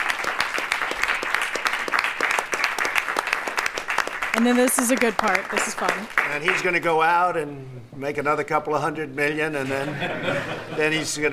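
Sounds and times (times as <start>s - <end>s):
steady applause from a group of people in a meeting room: 0.0s - 6.8s
speech: 4.4s - 11.3s
laughter: 9.6s - 11.3s.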